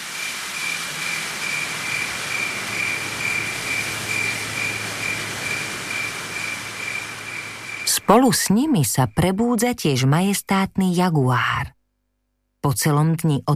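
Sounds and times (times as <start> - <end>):
leaves rustling in night breeze: 0.0 - 8.1
speech: 8.1 - 11.8, 12.6 - 13.5.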